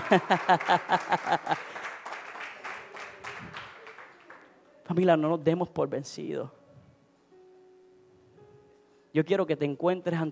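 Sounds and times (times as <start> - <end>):
laughter: 0.0 - 1.9
crowd clapping in rhythm: 0.0 - 4.6
speech: 0.1 - 1.7, 4.9 - 6.6, 9.2 - 10.3.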